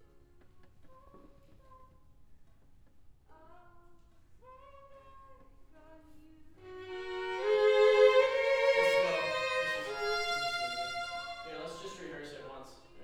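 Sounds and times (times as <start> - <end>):
cello: 6.6 - 12.7.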